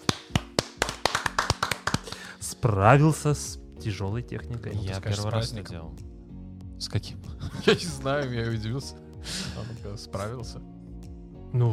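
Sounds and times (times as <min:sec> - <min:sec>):
hand claps from one or two people: 0:00.0 - 0:02.4
speech: 0:02.6 - 0:06.1, 0:06.8 - 0:10.7, 0:11.5 - 0:11.7
laughter: 0:07.3 - 0:08.5, 0:09.3 - 0:09.9.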